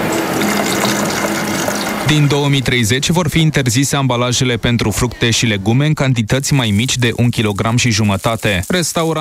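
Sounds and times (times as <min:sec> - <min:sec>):
liquid pouring into a bottle: 0:00.2 - 0:02.1
speech: 0:02.1 - 0:09.1.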